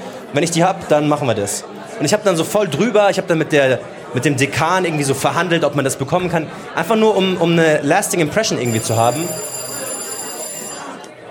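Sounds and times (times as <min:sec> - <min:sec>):
speech: 0:00.3 - 0:09.6
faint murmuring voices: 0:01.0 - 0:11.2
doorbell buzzing: 0:08.7 - 0:11.0.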